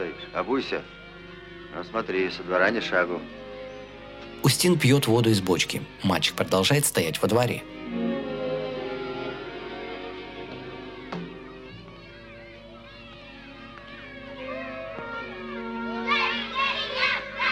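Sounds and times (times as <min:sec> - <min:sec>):
speech: 0:00.1 - 0:01.0, 0:01.7 - 0:03.4, 0:04.4 - 0:08.2
children playing on a street chattering and calling out: 0:10.8 - 0:17.5
children shrieking and shouting: 0:11.5 - 0:17.5.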